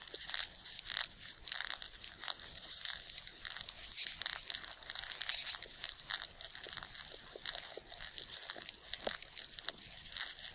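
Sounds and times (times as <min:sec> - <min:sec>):
ants clicking and rustling: 0:00.0 - 0:10.5.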